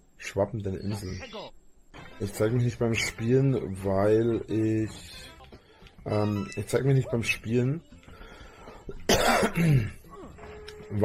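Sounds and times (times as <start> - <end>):
speech: 0.4 - 1.6, 2.2 - 5.3, 6.0 - 8.0, 9.6 - 10.0
person coughing into a microphone: 9.1 - 10.3
throat clearing: 9.1 - 10.3.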